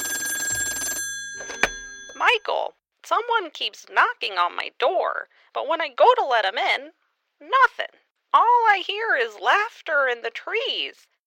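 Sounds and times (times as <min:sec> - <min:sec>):
telephone ringing: 0:00.0 - 0:02.6
speech: 0:02.2 - 0:11.1.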